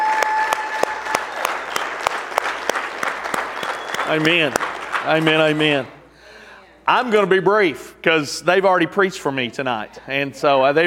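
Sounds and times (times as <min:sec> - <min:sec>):
audience applause: 0:00.0 - 0:05.9
speech: 0:04.1 - 0:06.0, 0:06.9 - 0:10.8.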